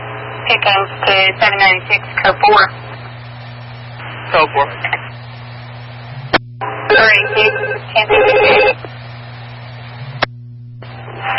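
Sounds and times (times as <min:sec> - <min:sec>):
steady low hum: 0:00.0 - 0:11.3
speech: 0:00.5 - 0:02.8, 0:04.3 - 0:05.0, 0:07.0 - 0:08.7
telephone ringing during a police dispatch exchange: 0:06.9 - 0:08.8.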